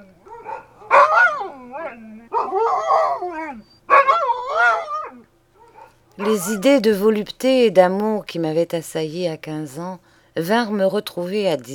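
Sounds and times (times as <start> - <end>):
dogs barking at a house at nightfall: 0.0 - 6.8
speech: 6.2 - 11.7.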